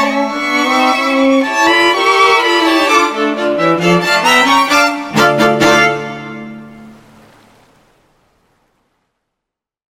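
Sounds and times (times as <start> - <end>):
strings: 0.0 - 7.1.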